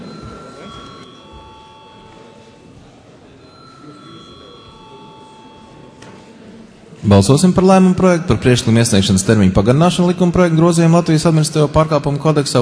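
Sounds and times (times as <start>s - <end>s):
parliament chamber bell calling a vote: 0.0s - 2.4s, 3.4s - 6.0s
murmur of voices: 0.0s - 12.6s
speech: 7.0s - 12.6s.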